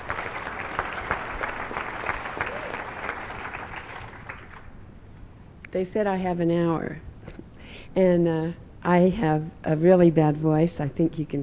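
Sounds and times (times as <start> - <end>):
audience applause: 0.0 - 4.7
speech: 5.7 - 7.1, 7.9 - 11.4.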